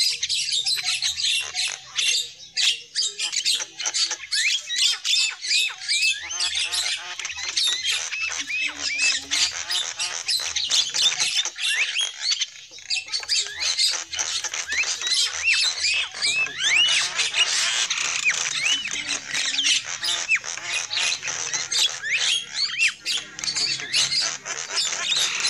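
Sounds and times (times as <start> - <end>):
lovebirds chattering: 0.0 - 25.4.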